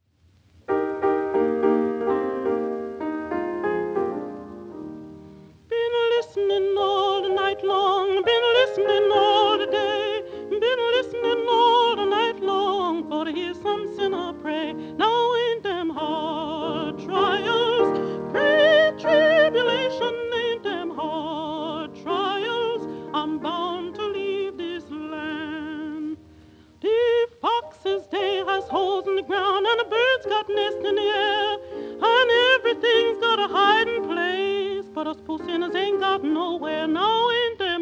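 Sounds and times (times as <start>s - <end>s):
spiritual song: 0.7s - 37.7s.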